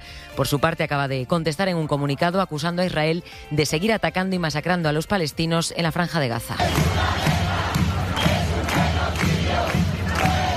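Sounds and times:
speech: 0.4 - 7.4
demonstrators chanting at a protest in Spain against the killing in Gaza: 6.6 - 10.5.

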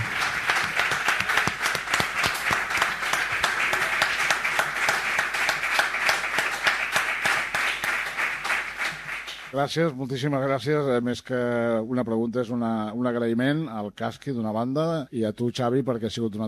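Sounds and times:
audience applause: 0.0 - 9.6
speech: 9.6 - 16.4.

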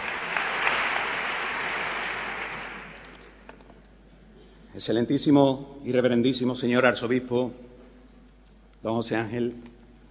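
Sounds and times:
sustained applause from a large audience: 0.0 - 3.3
speech: 4.8 - 7.7, 8.8 - 9.8.

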